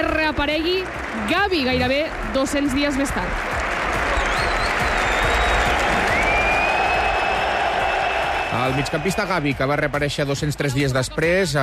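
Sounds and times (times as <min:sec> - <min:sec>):
Camp Nou stadium crowd ovation with applause and cheering: 0:00.0 - 0:11.0
speech: 0:00.3 - 0:03.5, 0:08.6 - 0:11.6
shrill whistles: 0:04.1 - 0:09.2.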